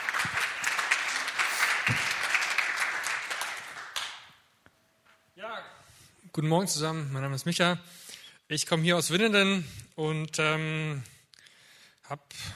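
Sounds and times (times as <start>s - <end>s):
crowd applause: 0.0s - 4.4s
speech: 6.4s - 11.1s, 12.1s - 12.5s.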